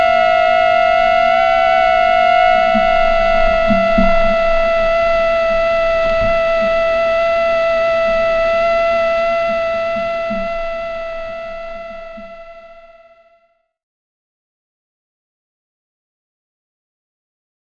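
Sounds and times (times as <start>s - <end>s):
mosquito buzzing: 0.0s - 13.5s.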